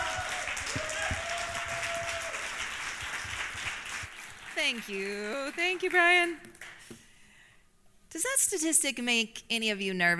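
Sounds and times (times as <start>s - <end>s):
audience applause: 0.0s - 6.7s
speech: 4.7s - 6.5s, 8.2s - 10.1s.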